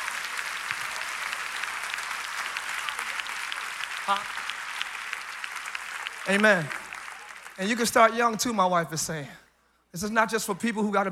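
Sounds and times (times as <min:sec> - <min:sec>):
audience clapping hands: 0:00.0 - 0:08.4
speech: 0:04.1 - 0:04.6, 0:06.3 - 0:06.8, 0:07.6 - 0:11.0.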